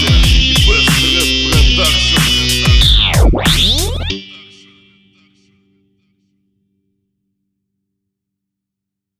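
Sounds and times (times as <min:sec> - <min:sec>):
rap production: 0:00.0 - 0:04.6.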